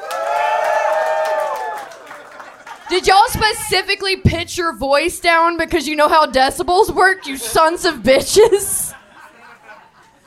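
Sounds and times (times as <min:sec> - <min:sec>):
audience clapping and cheering: 0:00.0 - 0:03.2
laughter: 0:02.0 - 0:03.5, 0:07.0 - 0:10.2
speech: 0:02.9 - 0:08.8.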